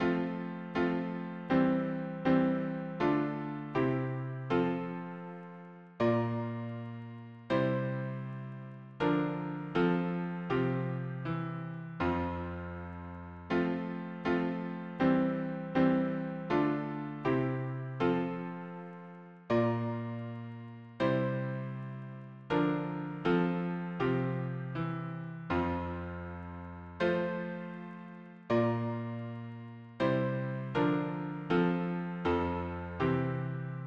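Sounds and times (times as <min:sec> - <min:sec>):
piano harmony: 0:00.0 - 0:33.8.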